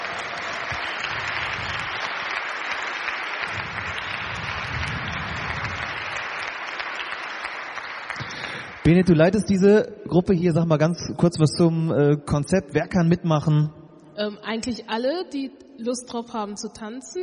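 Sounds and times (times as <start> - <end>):
audience applause: 0.0 - 9.4
speech: 8.8 - 17.2.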